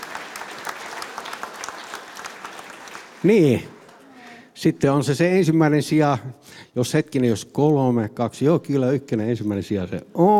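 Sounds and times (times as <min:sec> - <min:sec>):
group clapping at a medal ceremony: 0:00.0 - 0:04.6
speech: 0:03.2 - 0:03.7, 0:04.6 - 0:10.3.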